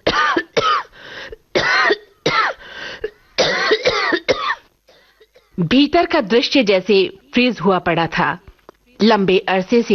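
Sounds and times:
harsh coughing from inhaled dust: 0:00.0 - 0:05.5
speech: 0:05.6 - 0:09.9.

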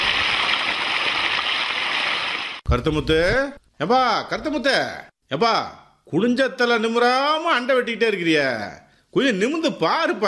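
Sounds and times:
water flowing: 0:00.0 - 0:02.6
speech: 0:02.7 - 0:10.2.

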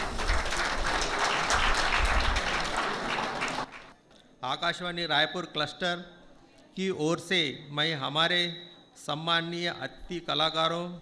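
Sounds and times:
loud audience applause: 0:00.0 - 0:03.9
speech: 0:04.5 - 0:06.2, 0:06.8 - 0:11.0.

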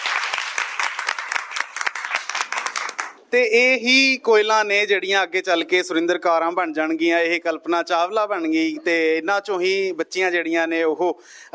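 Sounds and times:
loud audience applause after a folk song performance: 0:00.0 - 0:03.2
speech: 0:03.3 - 0:11.5.

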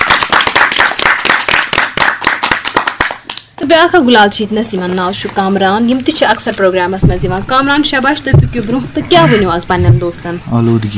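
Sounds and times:
loud applause from an audience at a program: 0:00.0 - 0:03.5
speech: 0:03.7 - 0:10.9.

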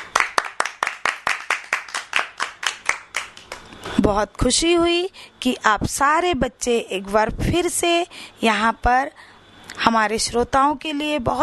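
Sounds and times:
children clapping loudly: 0:00.0 - 0:04.0
speech: 0:04.0 - 0:11.4.

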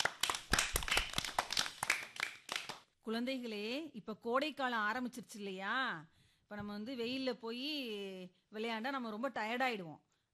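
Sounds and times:
audience clapping after a student's speech: 0:00.0 - 0:02.9
speech: 0:03.1 - 0:10.1.

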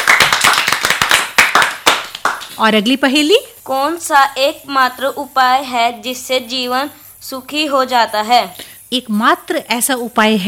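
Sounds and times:
audience applause for a correct answer in a riddle game: 0:00.0 - 0:02.4
speech: 0:02.6 - 0:10.4.

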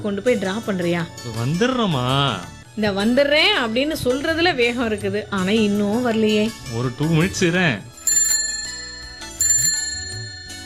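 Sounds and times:
speech: 0:00.0 - 0:07.9
bicycle bell ringing: 0:07.9 - 0:10.6.

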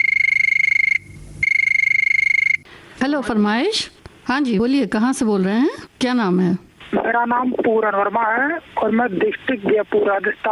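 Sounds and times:
telephone ringing: 0:00.0 - 0:02.6
speech: 0:03.0 - 0:10.5.

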